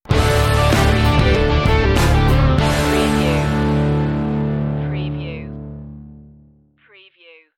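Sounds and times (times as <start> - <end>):
Texas rock music stinger: 0.1 - 5.0.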